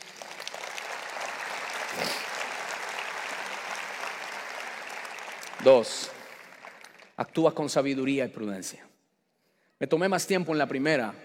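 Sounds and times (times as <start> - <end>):
audience applause: 0.0 - 7.4
speech: 5.6 - 6.2, 7.2 - 8.9, 9.8 - 11.2.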